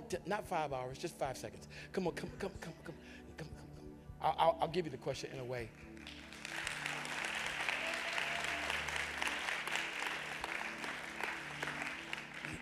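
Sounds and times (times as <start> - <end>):
speech: 0.1 - 3.6, 4.2 - 5.9
audience clapping: 5.8 - 12.6.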